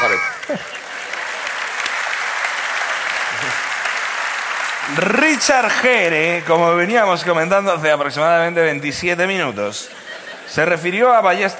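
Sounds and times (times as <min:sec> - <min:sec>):
laughter: 0:00.0 - 0:01.5, 0:09.6 - 0:11.5
applause: 0:00.0 - 0:07.3
speech: 0:05.0 - 0:11.5.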